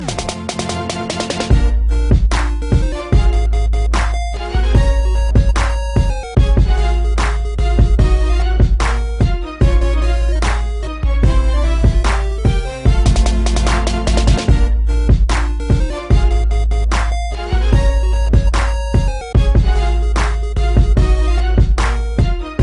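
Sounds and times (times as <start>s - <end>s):
music beat: 0.0s - 22.6s.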